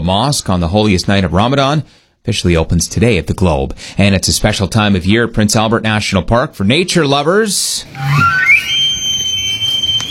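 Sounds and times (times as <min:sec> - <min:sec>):
speech: 0:00.0 - 0:08.9
elk bugling during the rut: 0:08.0 - 0:10.0.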